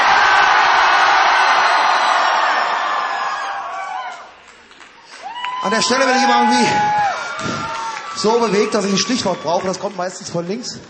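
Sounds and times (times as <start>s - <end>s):
crowd shouting a collective scream: 0.0s - 10.6s
speech: 5.6s - 7.6s, 8.2s - 10.8s.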